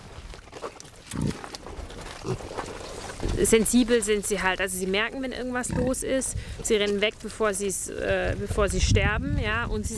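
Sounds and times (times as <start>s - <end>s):
rustling: 0.0s - 5.2s
old breeding sow grunting: 1.1s - 3.4s, 5.6s - 6.0s
speech: 3.4s - 9.9s.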